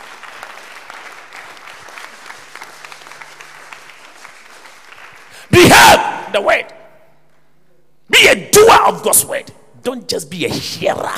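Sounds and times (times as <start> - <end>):
audience applause: 0.0 - 5.5
speech: 5.6 - 6.8, 8.2 - 11.1.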